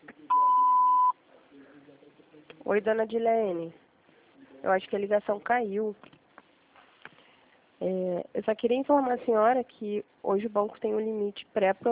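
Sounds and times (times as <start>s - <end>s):
answering machine beep: 0.3s - 1.2s
speech: 2.7s - 3.8s, 4.6s - 6.1s, 7.8s - 11.9s.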